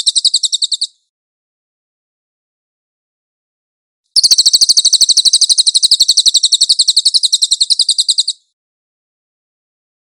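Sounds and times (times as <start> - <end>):
Cililin high metallic chirping trill: 4.2 - 8.4.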